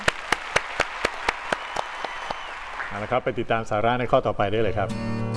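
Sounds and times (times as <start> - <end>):
audience clapping in an even rhythm: 0.0 - 3.6
speech: 2.9 - 5.2.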